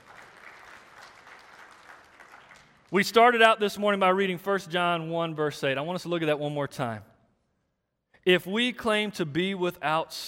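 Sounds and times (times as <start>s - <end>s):
audience clapping: 0.0s - 3.0s
speech: 2.9s - 7.1s, 8.2s - 10.2s.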